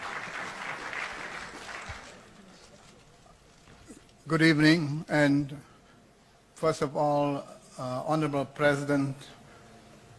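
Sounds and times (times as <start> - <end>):
audience applause: 0.0 - 2.4
speech: 4.3 - 5.7, 6.6 - 9.4.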